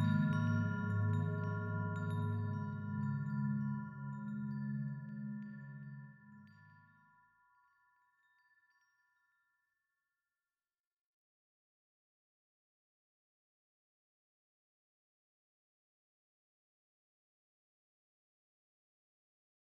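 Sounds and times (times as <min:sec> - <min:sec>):
bell and chime drone: 0:00.0 - 0:09.8.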